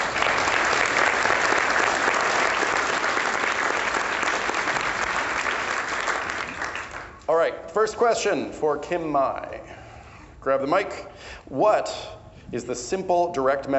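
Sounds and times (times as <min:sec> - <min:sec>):
audience applause: 0:00.0 - 0:07.2
speech: 0:07.5 - 0:09.6, 0:10.4 - 0:13.7.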